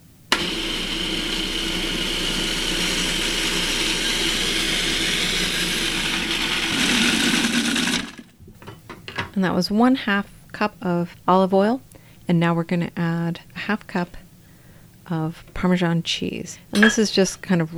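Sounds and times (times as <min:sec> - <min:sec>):
food processor running: 0:00.3 - 0:08.3
speech: 0:09.4 - 0:14.2, 0:15.1 - 0:17.7.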